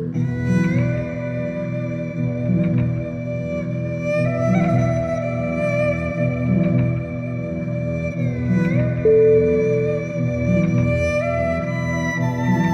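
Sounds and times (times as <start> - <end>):
erhu playing meditation music: 0.1 - 12.7.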